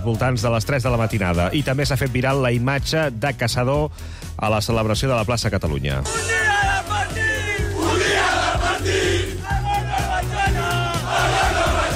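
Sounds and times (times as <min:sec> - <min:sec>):
speech: 0:00.0 - 0:06.4
huge crowd of football fans chanting: 0:07.4 - 0:11.9.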